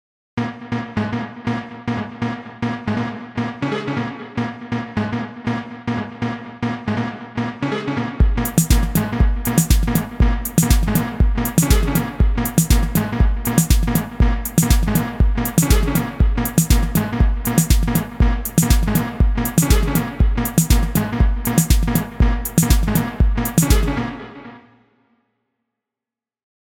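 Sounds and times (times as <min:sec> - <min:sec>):
techno music: 0:01.2 - 0:24.5.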